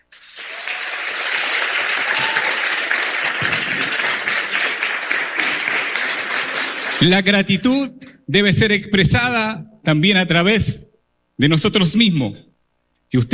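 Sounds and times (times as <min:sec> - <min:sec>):
crowd loud applause: 0:00.0 - 0:07.5
speech: 0:07.0 - 0:10.8, 0:11.4 - 0:12.5, 0:13.1 - 0:13.3.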